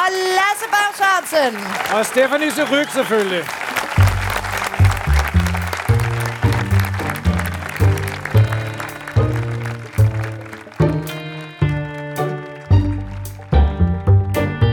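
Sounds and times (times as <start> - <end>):
audience applause: 0.0 - 14.1
speech: 0.1 - 3.8
rhythmic musical backing with a pulsing bass line: 4.0 - 14.7.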